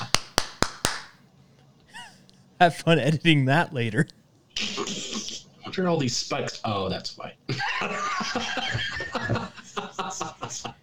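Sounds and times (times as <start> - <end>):
hand claps for audio sync: 0.0 - 1.2
speech: 2.6 - 4.2, 5.8 - 9.4, 10.1 - 10.7
laughter: 7.5 - 10.8.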